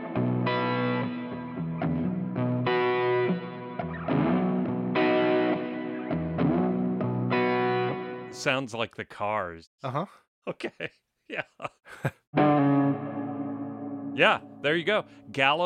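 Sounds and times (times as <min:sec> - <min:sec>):
distorted electric guitar chords through overdrive with washy reverb: 0:00.0 - 0:08.4, 0:12.4 - 0:15.3
speech: 0:08.4 - 0:13.0, 0:14.2 - 0:15.6.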